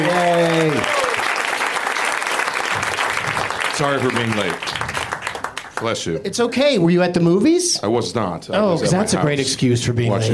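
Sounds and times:
audience applause: 0:00.0 - 0:06.1
speech: 0:03.8 - 0:05.0, 0:05.8 - 0:10.3.

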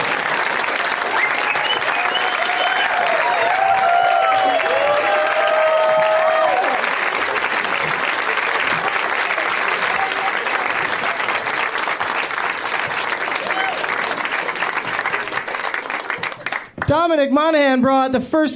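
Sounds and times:
audience applause: 0:00.0 - 0:16.8
whoops and cheers: 0:01.1 - 0:06.9, 0:09.7 - 0:10.6, 0:13.3 - 0:14.0
speech: 0:17.1 - 0:18.5.

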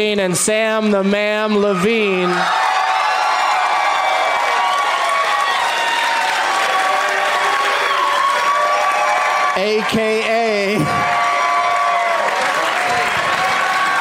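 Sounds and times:
speech: 0:00.0 - 0:02.6, 0:09.6 - 0:11.2
game show studio audience clapping: 0:01.6 - 0:13.9
studio audience whoops and shouts: 0:02.0 - 0:09.6, 0:10.7 - 0:13.9.

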